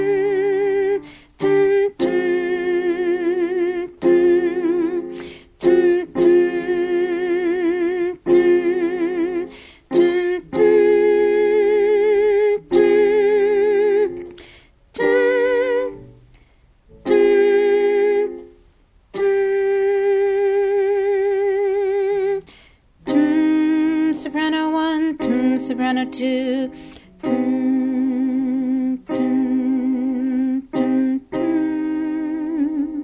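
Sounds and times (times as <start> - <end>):
chorus singing: 0.0 - 14.1, 15.0 - 16.2, 17.0 - 18.5, 23.1 - 33.0
soprano singing: 0.0 - 16.3, 16.9 - 33.0.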